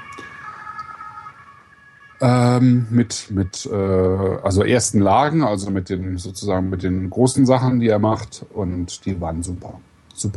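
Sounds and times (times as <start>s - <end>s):
fire engine siren: 0.0s - 5.3s
speech: 2.2s - 10.3s.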